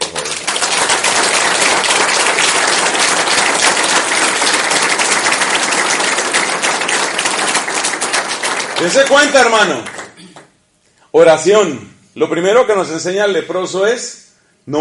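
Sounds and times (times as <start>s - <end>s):
crowd applauding: 0.0s - 10.5s
speech: 8.8s - 10.0s, 11.1s - 14.7s.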